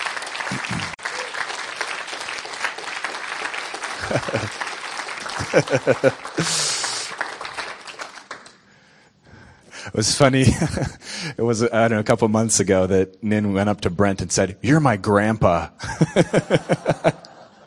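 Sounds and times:
audience applause welcoming someone to the stage: 0:00.0 - 0:08.6
speech: 0:00.5 - 0:01.0, 0:04.1 - 0:04.7, 0:05.4 - 0:06.8, 0:09.9 - 0:17.2
laughter: 0:03.9 - 0:07.1, 0:15.8 - 0:17.6.

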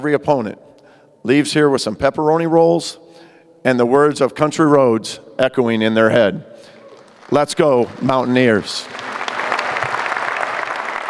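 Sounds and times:
speech: 0:00.0 - 0:03.0, 0:03.6 - 0:06.7, 0:07.3 - 0:09.0
crowd ovation at the Coliseum after a new Mountaineers head coach's opening remarks: 0:06.7 - 0:11.0.

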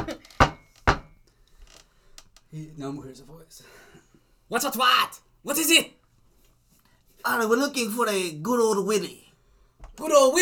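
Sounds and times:
light knocking on a door: 0:00.0 - 0:01.2
speech: 0:02.5 - 0:06.0, 0:07.2 - 0:09.2, 0:10.0 - 0:10.4.

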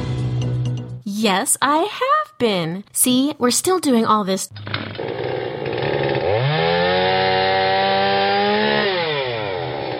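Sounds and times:
speech: 0:01.2 - 0:05.3
construction saw idling and revving: 0:04.5 - 0:09.9.

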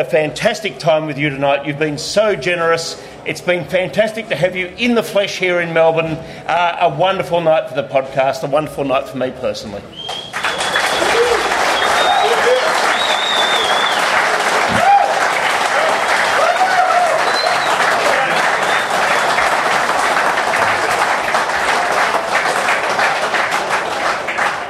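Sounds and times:
speech: 0:00.0 - 0:10.1
large audience applause: 0:10.0 - 0:24.6
faint voices and cheers: 0:10.3 - 0:19.4.

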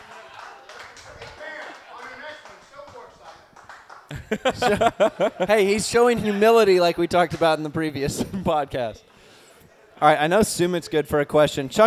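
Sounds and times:
small group applause: 0:00.0 - 0:05.7
laughter: 0:00.0 - 0:08.9
speech: 0:04.1 - 0:09.1, 0:10.0 - 0:11.8.

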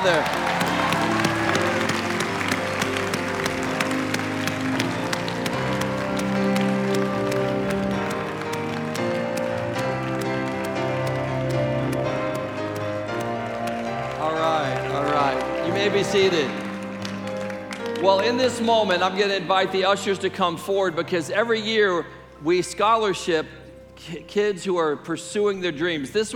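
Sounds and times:
speech: 0:00.0 - 0:00.6, 0:16.1 - 0:16.6, 0:18.0 - 0:26.3
audience applause: 0:00.0 - 0:19.0
music with sustained tones: 0:00.0 - 0:26.3.

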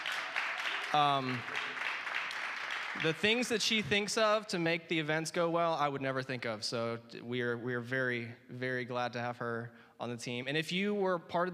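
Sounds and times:
audience applause: 0:00.0 - 0:03.8
speech: 0:00.9 - 0:01.6, 0:03.0 - 0:11.5.

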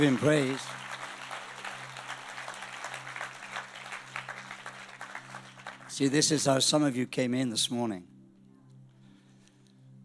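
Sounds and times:
speech: 0:00.0 - 0:00.8, 0:06.0 - 0:08.1
crowd applauding: 0:00.0 - 0:06.6.

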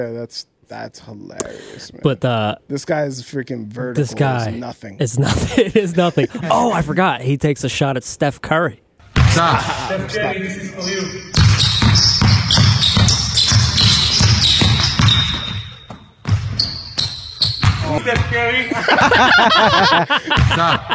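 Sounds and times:
speech: 0:00.0 - 0:12.1, 0:17.9 - 0:20.9
people chuckling: 0:05.2 - 0:06.9, 0:09.3 - 0:10.3, 0:18.6 - 0:20.9
basketball dribbled through the legs: 0:11.4 - 0:18.3.

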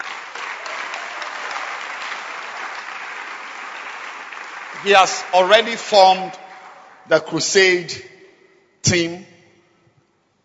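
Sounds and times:
audience clapping hands: 0:00.0 - 0:07.1
speech: 0:04.8 - 0:06.4, 0:07.1 - 0:08.1, 0:08.8 - 0:09.3.

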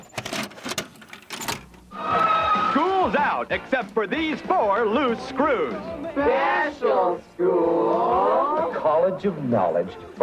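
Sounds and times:
VHS tape being pushed into a VCR and loaded: 0:00.0 - 0:04.0
speech: 0:03.0 - 0:10.2.

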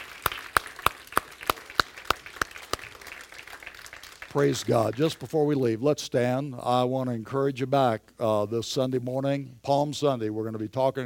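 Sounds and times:
audience clapping: 0:00.0 - 0:05.4
speech: 0:04.4 - 0:11.0.

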